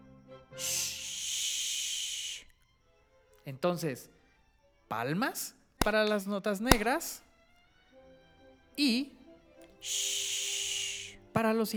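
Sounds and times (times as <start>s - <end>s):
speech: 0.6s - 0.8s, 3.5s - 4.2s, 4.9s - 7.3s, 8.8s - 9.2s, 9.8s - 10.5s, 11.4s - 11.7s
person shushing representing a musical rest: 0.6s - 2.5s, 9.8s - 11.2s.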